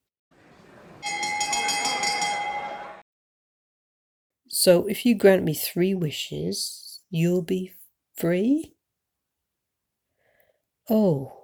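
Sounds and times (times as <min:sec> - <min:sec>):
boxing ring bell: 0:01.0 - 0:03.0
speech: 0:04.6 - 0:08.8, 0:10.9 - 0:11.4.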